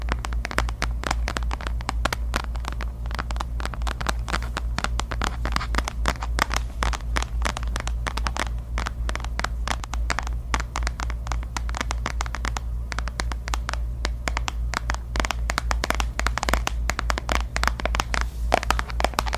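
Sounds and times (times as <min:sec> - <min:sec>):
long nails tapping and scratching across objects: 0:00.0 - 0:19.3
steady low hum: 0:00.0 - 0:19.3.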